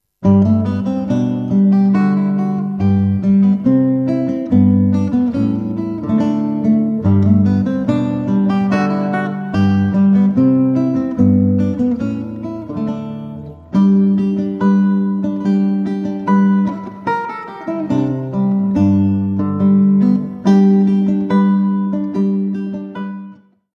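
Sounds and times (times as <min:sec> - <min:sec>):
gavotte: 0:00.2 - 0:23.4.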